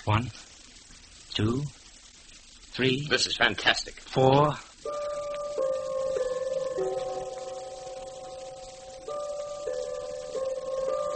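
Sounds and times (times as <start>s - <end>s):
speech: 0.0s - 0.5s, 1.4s - 1.8s, 2.8s - 5.0s
clock on the bookcase chiming the hour: 4.8s - 11.1s.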